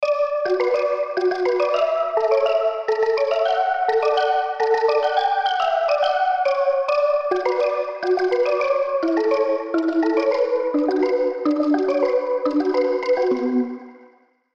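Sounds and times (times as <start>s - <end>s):
hardstyle hardcore MIDI synth melody: 0.1s - 14.2s.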